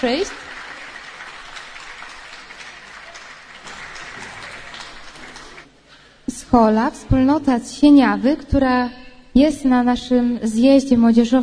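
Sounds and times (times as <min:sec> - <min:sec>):
speech: 0:00.0 - 0:00.4, 0:06.5 - 0:11.4
audience applause: 0:00.0 - 0:05.8.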